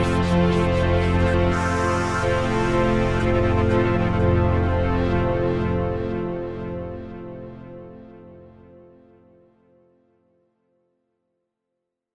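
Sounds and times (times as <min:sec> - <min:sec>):
Korg Z1 synth pad: 0:00.2 - 0:07.0.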